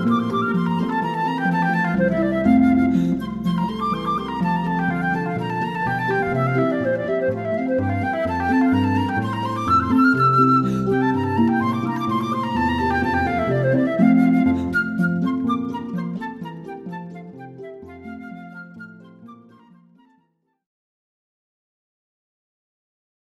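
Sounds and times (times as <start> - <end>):
harp: 0.0 - 20.2
flute: 0.0 - 20.5.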